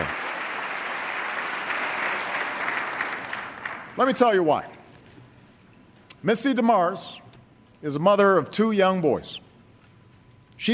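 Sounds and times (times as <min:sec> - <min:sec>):
Democratic applause in congressional chamber: 0:00.0 - 0:04.2
speech: 0:04.0 - 0:04.8, 0:06.2 - 0:07.2, 0:07.8 - 0:09.4.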